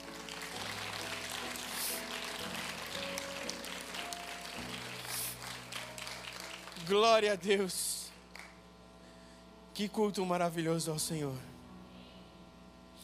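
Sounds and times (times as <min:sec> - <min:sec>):
audience applause: 0:00.0 - 0:07.3
speech: 0:06.9 - 0:07.9, 0:09.8 - 0:11.5.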